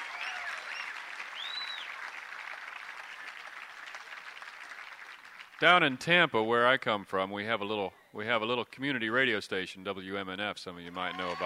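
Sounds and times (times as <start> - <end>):
audience applause: 0.0 - 6.0, 10.9 - 11.4
speech: 5.6 - 11.4.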